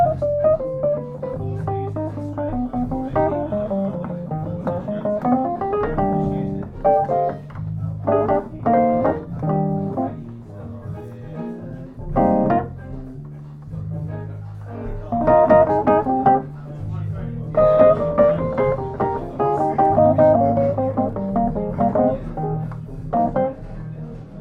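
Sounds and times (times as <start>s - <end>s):
Wurlitzer being played: 0.0s - 10.2s, 15.1s - 16.6s, 17.6s - 23.5s.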